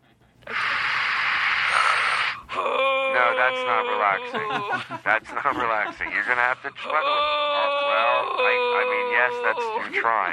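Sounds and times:
deep breath: 0.0s - 2.5s
speech: 3.4s - 10.3s
laughter: 3.7s - 6.9s.

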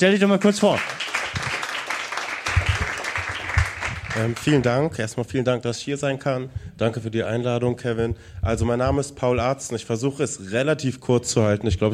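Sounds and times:
speech: 0.0s - 1.0s, 4.2s - 11.9s
audience applause: 0.3s - 4.6s.

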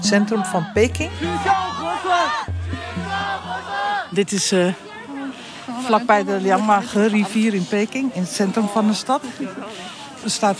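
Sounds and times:
speech: 0.0s - 3.0s, 4.1s - 4.9s, 5.8s - 10.5s
protest crowd chanting and yelling in Peking: 0.0s - 6.6s.

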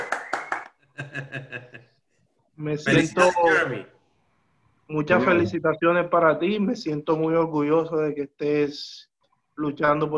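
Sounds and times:
audience applause: 0.0s - 0.7s
laughter: 1.0s - 1.8s
speech: 2.6s - 3.9s, 4.9s - 10.1s.

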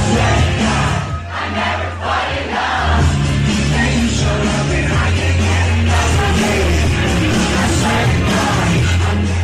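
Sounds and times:
concert audience cheering and yelling at a pop-up show: 0.0s - 9.4s.

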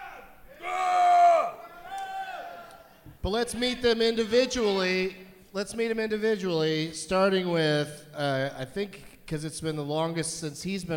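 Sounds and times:
audience shouting: 0.0s - 3.0s
speech: 3.2s - 10.9s.

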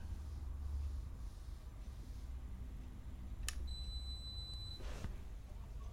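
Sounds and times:
low hum: 0.0s - 5.9s
dishwasher high-pitched electronic beep: 3.7s - 4.8s.

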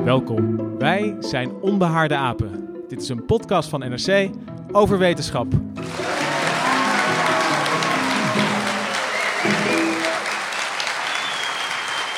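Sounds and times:
speech: 0.0s - 6.2s
faint voices and cheers: 5.8s - 12.1s
loud steady applause from a large live audience: 5.8s - 12.1s.

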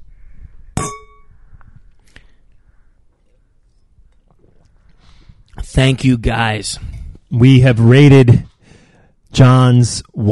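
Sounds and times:
wine glasses clinking in a toast: 0.8s - 1.2s
speech: 5.7s - 8.5s, 9.4s - 10.3s.

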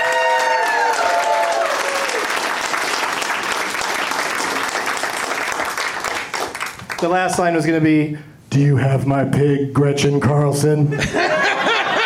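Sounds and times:
audience applause: 0.0s - 7.0s
speech: 7.0s - 11.5s
laughter: 10.9s - 12.0s.

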